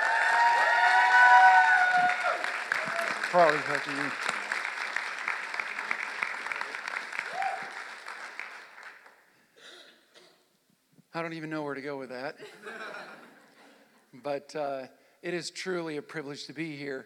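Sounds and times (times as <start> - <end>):
church audience applauding to welcome a pastor: 0.0 - 9.2
speech: 3.3 - 4.3, 11.2 - 13.0, 14.1 - 17.0.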